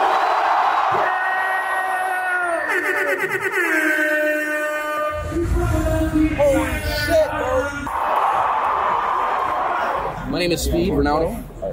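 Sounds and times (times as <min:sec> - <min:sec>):
large crowd yelling and screaming: 0:00.0 - 0:10.3
speech: 0:03.0 - 0:03.7, 0:10.4 - 0:11.5.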